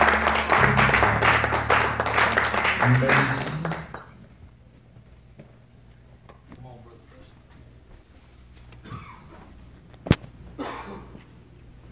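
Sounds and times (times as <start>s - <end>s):
audience clapping in praise: 0.0s - 4.4s
speech: 2.9s - 3.5s.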